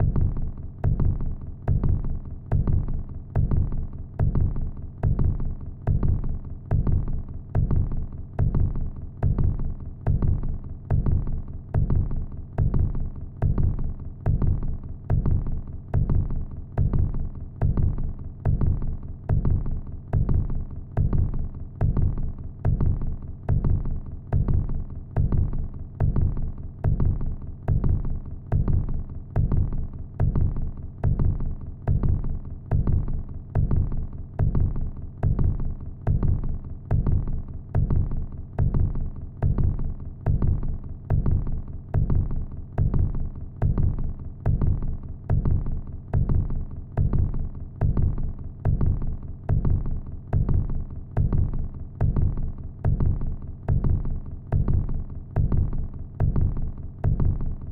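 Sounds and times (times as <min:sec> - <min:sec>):
heartbeat: 0:00.0 - 0:57.6.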